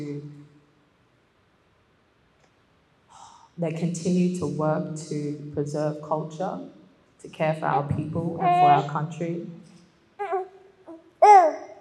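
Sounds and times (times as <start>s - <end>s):
speech: 3.6s - 9.6s
teething baby babbling in the audience at a poetry reading: 7.7s - 8.9s, 10.2s - 11.7s.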